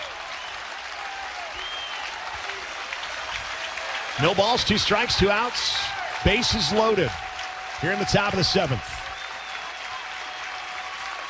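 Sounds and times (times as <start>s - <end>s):
whistles: 0.0s - 0.7s, 1.4s - 2.2s, 9.0s - 11.1s
baseball crowd cheering and applauding: 0.0s - 11.2s
speech: 4.2s - 7.2s, 7.8s - 9.0s.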